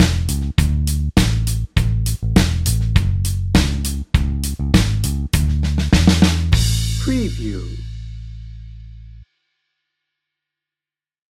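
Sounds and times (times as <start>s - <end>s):
drum and bass music: 0.0s - 7.9s.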